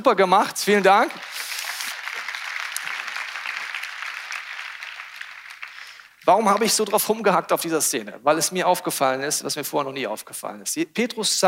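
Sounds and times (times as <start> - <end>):
speech: 0.0 - 1.3, 6.3 - 11.4
audience applause: 0.6 - 6.8.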